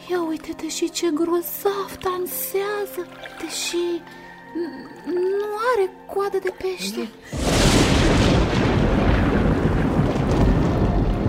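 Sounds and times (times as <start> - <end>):
speech: 0.4 - 8.6
storm thunder rumble: 7.3 - 11.2.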